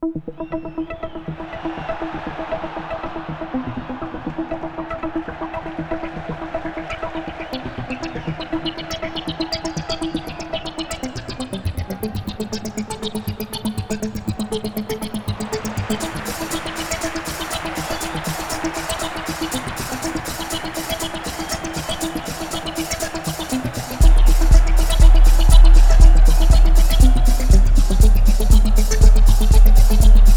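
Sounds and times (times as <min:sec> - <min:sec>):
music: 0:00.0 - 0:30.3.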